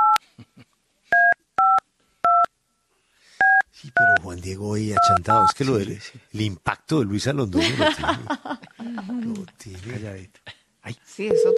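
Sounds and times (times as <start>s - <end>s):
telephone dialing tones: 1.2s - 2.5s, 11.3s - 11.5s
speech: 4.4s - 11.5s
laughter: 7.4s - 9.4s.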